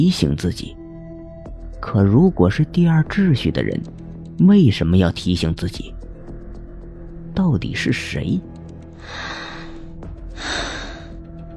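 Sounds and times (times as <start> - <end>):
speech: 0.0 - 0.8, 1.8 - 6.0, 7.4 - 9.4
person breathing behind a door: 8.9 - 11.3.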